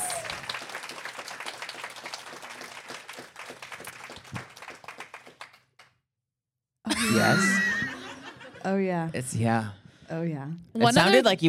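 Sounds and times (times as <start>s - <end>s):
audience cheering: 0.0s - 2.9s
audience clapping: 0.0s - 6.0s
laughter: 6.9s - 8.7s
speech: 7.0s - 7.6s, 8.6s - 11.4s.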